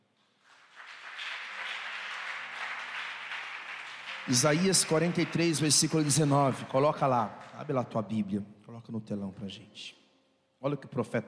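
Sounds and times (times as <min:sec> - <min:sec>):
audience applause: 0:00.4 - 0:07.8
speech: 0:04.2 - 0:10.0, 0:10.6 - 0:11.2.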